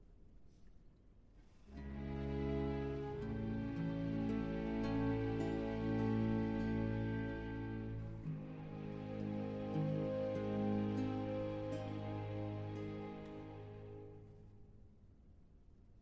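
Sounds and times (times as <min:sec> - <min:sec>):
concerto for strings in F major: 0:01.7 - 0:14.5.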